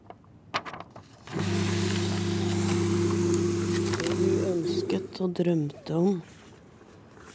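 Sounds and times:
paper shredder shredding documents: 1.2 - 5.2
speech: 4.9 - 6.3.

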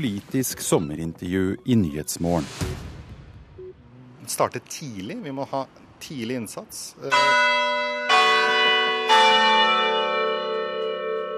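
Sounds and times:
speech: 0.0 - 2.9, 4.3 - 7.6
clock bell striking the quarter hour: 7.1 - 11.3.

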